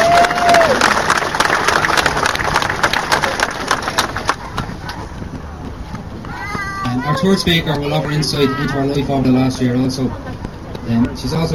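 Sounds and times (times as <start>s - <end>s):
crowd applause: 0.0s - 5.3s
speech: 7.2s - 10.3s, 10.9s - 11.5s.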